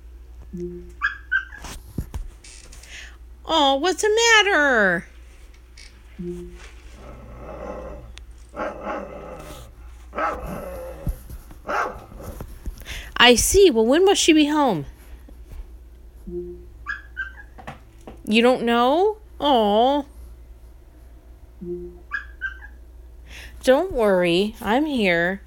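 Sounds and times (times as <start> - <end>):
speech: 0.5 - 1.1, 3.5 - 5.1, 6.2 - 6.7, 13.2 - 14.9, 18.3 - 20.1, 23.6 - 25.4
dog barking: 8.6 - 11.0, 11.7 - 12.2.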